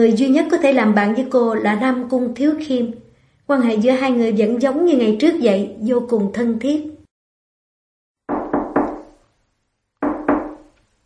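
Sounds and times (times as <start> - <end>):
speech: 0.0 - 6.9
knocking on a door: 8.3 - 9.2, 10.0 - 10.8.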